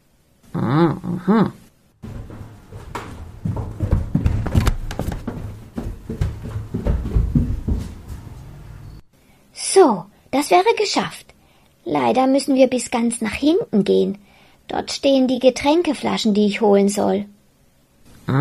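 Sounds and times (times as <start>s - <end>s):
speech: 0.6s - 1.6s, 9.8s - 11.3s, 11.9s - 17.4s
footsteps descending steep stairs: 2.0s - 9.0s.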